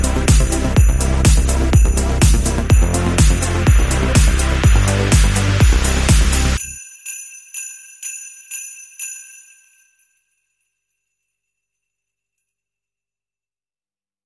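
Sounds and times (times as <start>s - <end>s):
big banger beats rhythm: 0.0s - 6.6s.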